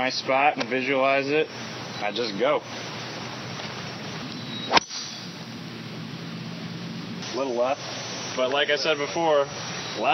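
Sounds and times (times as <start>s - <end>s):
speech: 0.0s - 3.0s, 7.4s - 10.1s
golf club swing swish: 4.7s - 5.2s
golf club hitting golf ball: 4.7s - 5.4s.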